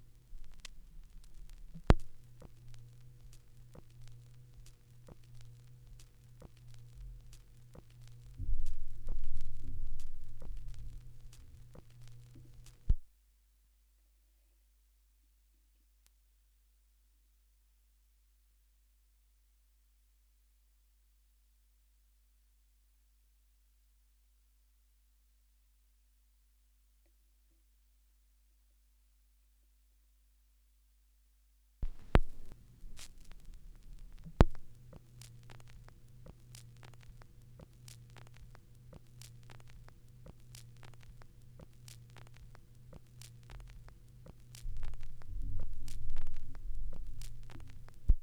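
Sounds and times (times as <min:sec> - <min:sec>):
vinyl record noise: 0:00.0 - 0:13.1, 0:31.8 - 0:48.2.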